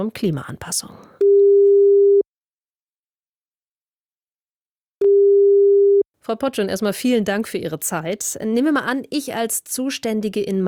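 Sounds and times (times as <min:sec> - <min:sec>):
speech: 0:00.0 - 0:01.3, 0:06.2 - 0:10.6
telephone ringback tone of an outgoing call: 0:01.2 - 0:02.2, 0:05.0 - 0:06.0.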